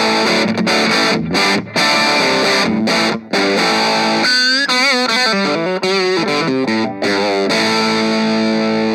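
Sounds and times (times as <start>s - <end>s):
crunchy overdriven electric guitar amp tone with strummed chords: 0.0s - 8.9s.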